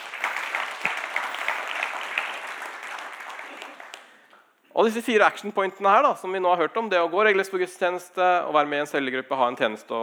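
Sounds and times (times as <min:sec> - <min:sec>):
audience applause: 0:00.0 - 0:04.2
speech: 0:04.8 - 0:10.0.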